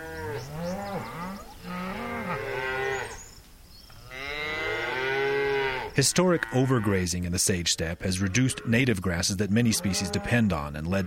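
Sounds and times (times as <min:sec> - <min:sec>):
cattle mooing: 0:00.0 - 0:03.2, 0:04.1 - 0:07.0, 0:09.6 - 0:11.0
speech: 0:06.0 - 0:11.0.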